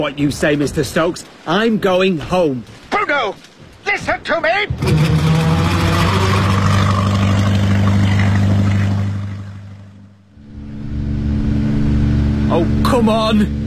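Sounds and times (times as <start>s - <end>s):
speech: 0.0s - 5.2s, 12.6s - 13.6s
slow-moving motorboat engine droning: 4.7s - 13.6s.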